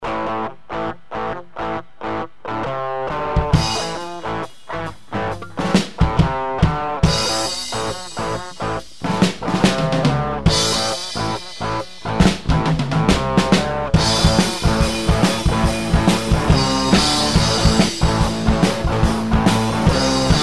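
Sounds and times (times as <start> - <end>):
blues instrumental: 0.0 - 20.4.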